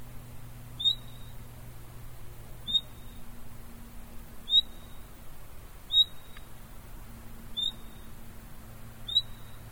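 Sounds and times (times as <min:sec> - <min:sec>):
Common nightingale Luscinia megarhynchos rising whistle call: 0:00.8 - 0:01.4, 0:02.6 - 0:03.2, 0:04.5 - 0:05.0, 0:05.9 - 0:06.4, 0:07.6 - 0:08.1, 0:09.0 - 0:09.6.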